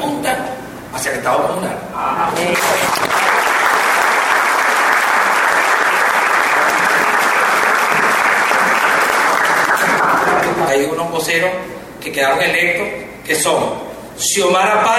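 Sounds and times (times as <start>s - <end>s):
speech: 1.0s - 3.2s, 10.8s - 14.9s
audience applause: 2.6s - 10.6s.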